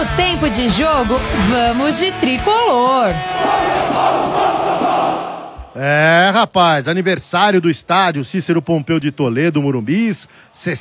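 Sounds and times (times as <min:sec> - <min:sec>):
speech: 0:00.2 - 0:10.7
football crowd of São Paulo fans cheering at Morumbis stadium: 0:03.3 - 0:05.8.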